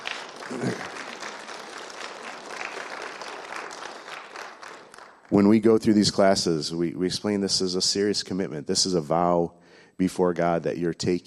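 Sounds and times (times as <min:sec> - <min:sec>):
audience clapping: 0:00.0 - 0:05.8
speech: 0:05.3 - 0:11.2.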